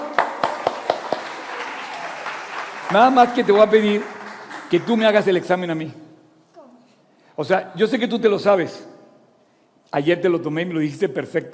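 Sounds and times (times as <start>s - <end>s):
audience applause: 0.0s - 5.4s
speech: 2.9s - 6.0s, 7.4s - 8.9s, 9.9s - 11.5s.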